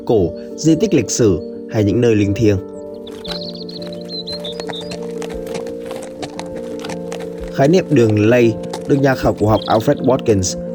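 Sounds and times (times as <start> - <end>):
speech: 0.1 - 3.4, 7.6 - 10.6
horse hooves clip-clopping: 2.3 - 10.4
high chirping trill: 2.6 - 10.2.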